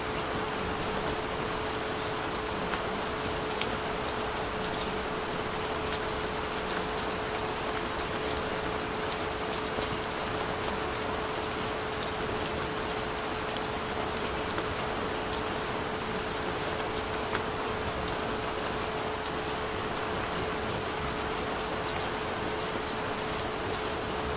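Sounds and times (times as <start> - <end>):
relaxing rain: 0.0 - 24.3.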